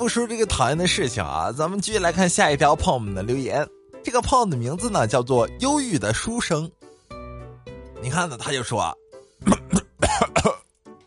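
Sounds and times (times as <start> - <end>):
speech: 0.0 - 6.8, 8.0 - 9.8
coughing: 9.4 - 10.7.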